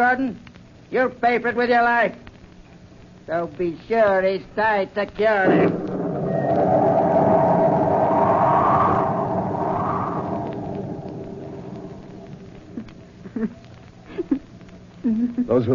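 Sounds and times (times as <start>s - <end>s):
speech: 0.0s - 2.3s, 3.3s - 5.8s, 15.5s - 15.7s
sharp creaks or flaps: 5.4s - 13.0s
storm wind howling through ship sails: 5.4s - 13.2s.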